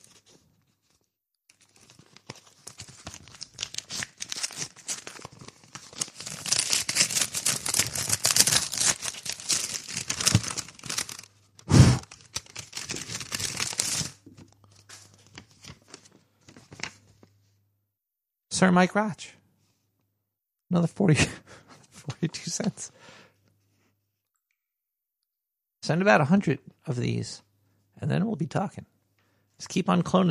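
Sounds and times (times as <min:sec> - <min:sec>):
paper package torn open: 0:01.5 - 0:15.9
speech: 0:18.6 - 0:19.2, 0:20.7 - 0:21.4, 0:22.6 - 0:23.0, 0:25.9 - 0:28.9, 0:29.6 - 0:30.2.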